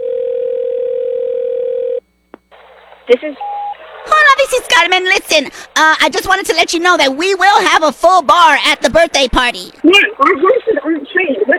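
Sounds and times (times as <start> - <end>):
telephone dial tone: 0.0 - 2.0
speech: 3.1 - 3.6, 4.5 - 11.5.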